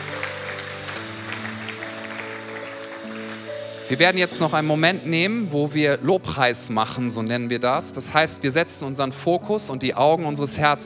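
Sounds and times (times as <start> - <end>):
audience applauding: 0.0 - 4.3
speech: 3.9 - 10.8.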